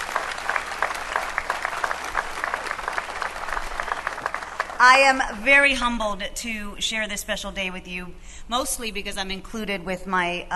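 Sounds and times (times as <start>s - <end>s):
audience applause: 0.0s - 5.0s
speech: 4.8s - 10.5s.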